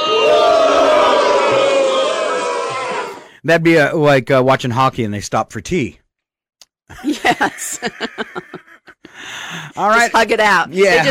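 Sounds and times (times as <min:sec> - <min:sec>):
crowd cheering: 0:00.0 - 0:03.3
speech: 0:03.4 - 0:06.0, 0:06.9 - 0:08.6, 0:09.2 - 0:11.0
laughter: 0:06.9 - 0:09.7.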